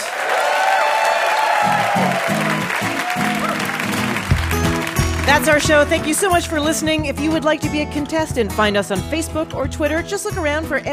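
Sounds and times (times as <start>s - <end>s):
audience applause and cheering for a band: 0.0s - 7.0s
speech: 5.3s - 10.9s.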